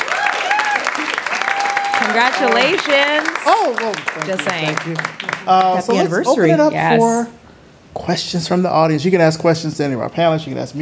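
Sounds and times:
audience voices whooping and calling out: 0.0s - 4.0s
audience applause at an anniversary celebration event: 0.0s - 6.2s
speech: 2.0s - 10.8s.

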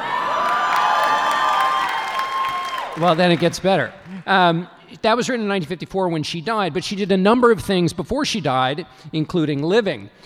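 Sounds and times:
crowd cheering and whooping: 0.0s - 3.5s
crowd clapping: 0.0s - 4.5s
speech: 3.0s - 10.2s.

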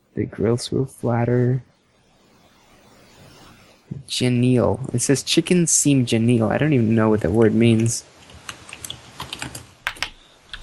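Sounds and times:
faint hiss: 0.0s - 10.6s
speech: 0.2s - 1.7s, 4.0s - 8.2s
typing on a computer keyboard: 8.3s - 10.6s.

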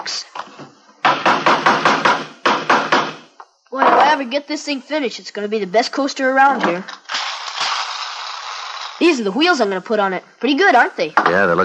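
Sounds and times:
speech: 0.0s - 0.4s, 4.1s - 7.0s, 9.0s - 11.6s
hammering on wood: 1.0s - 4.1s.

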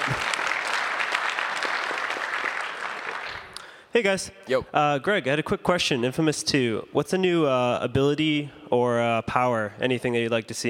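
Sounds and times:
audience applause: 0.0s - 3.6s
speech: 3.9s - 10.6s.

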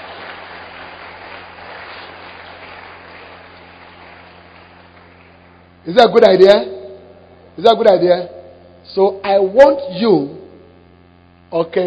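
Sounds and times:
audience clapping hands: 0.0s - 5.8s
speech: 5.8s - 6.8s, 7.6s - 10.4s, 11.5s - 11.8s.

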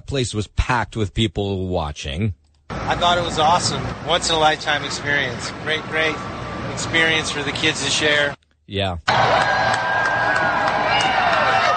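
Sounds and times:
speech: 0.1s - 9.5s
people cheering: 9.1s - 11.7s.

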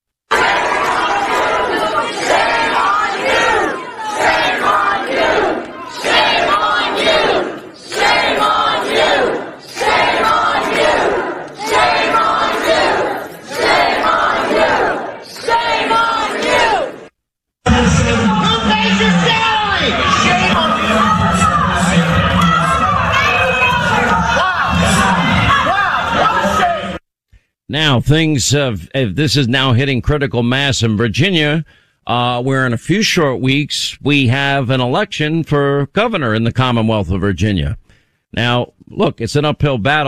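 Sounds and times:
parents emotionally yelling at school board members: 0.3s - 17.0s, 17.7s - 27.0s
speech: 28.1s - 40.0s.

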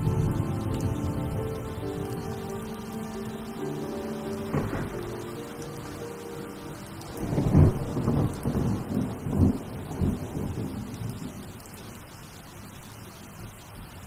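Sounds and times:
low sustained soundtrack tones: 0.0s - 8.9s
rainfall: 0.0s - 14.0s.

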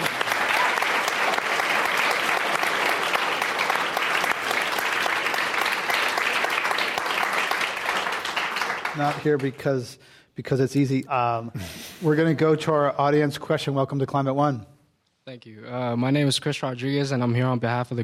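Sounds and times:
audience applause at a live climate discussion event: 0.0s - 9.6s
speech: 9.0s - 14.7s, 15.3s - 18.0s.

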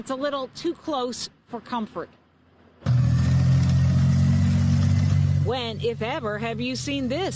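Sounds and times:
speech: 0.0s - 2.2s, 5.5s - 7.3s
military tank engine rumbling on the streets of Palmetto Bay, Florida: 2.8s - 7.3s.

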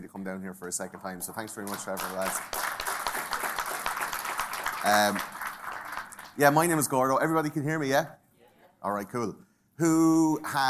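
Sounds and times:
speech: 0.0s - 2.8s, 4.8s - 5.4s, 6.4s - 8.2s, 8.8s - 10.6s
audience applause: 1.3s - 6.8s.

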